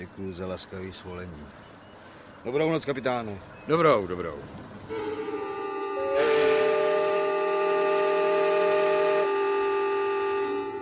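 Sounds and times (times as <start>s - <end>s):
speech: 0.0s - 1.7s, 2.4s - 5.3s
arriving steamboat horn blast: 4.9s - 10.7s.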